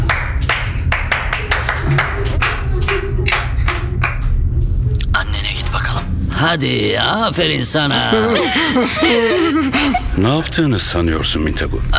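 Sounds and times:
applause: 0:00.0 - 0:04.2
low steady hum: 0:00.0 - 0:11.9
laughter: 0:01.3 - 0:04.1, 0:07.9 - 0:10.4
speech: 0:06.4 - 0:11.9.

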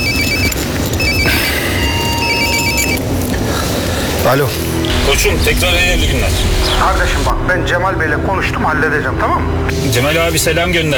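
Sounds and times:
telephone ringing: 0:00.0 - 0:03.4
speech: 0:04.3 - 0:10.9.

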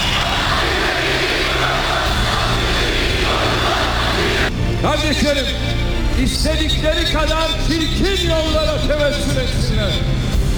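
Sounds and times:
crowd applauding: 0:00.0 - 0:04.5
speech: 0:05.1 - 0:10.2.

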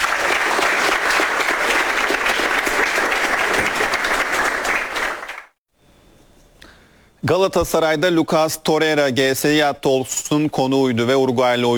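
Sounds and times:
crowd applauding: 0:00.0 - 0:05.6
speech: 0:07.2 - 0:11.7.

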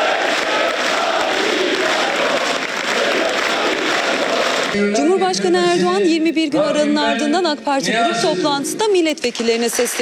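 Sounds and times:
large crowd applause: 0:00.0 - 0:04.8, 0:09.6 - 0:10.0
murmur of cheering voices: 0:00.0 - 0:04.8
speech: 0:04.8 - 0:10.0.

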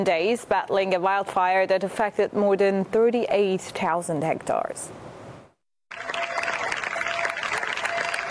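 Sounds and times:
speech: 0:00.0 - 0:05.1
residents applauding emergency crews: 0:05.9 - 0:08.3.

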